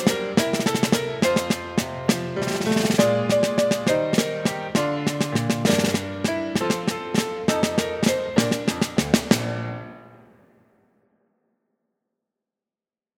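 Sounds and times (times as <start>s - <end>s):
snare drum: 0.0s - 10.0s.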